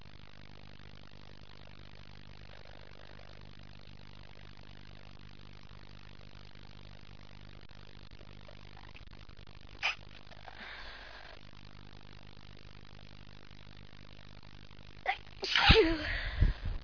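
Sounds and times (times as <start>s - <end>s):
woman stifling: 9.8s - 11.4s, 15.1s - 16.8s.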